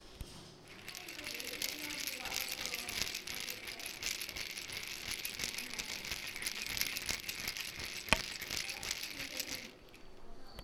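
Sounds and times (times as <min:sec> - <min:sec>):
chain rattling: 0:00.6 - 0:10.2.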